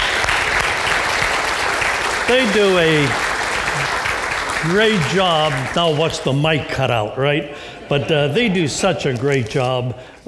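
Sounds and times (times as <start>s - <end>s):
crowd applauding: 0.0s - 6.5s
speech: 2.3s - 4.0s, 4.6s - 10.2s.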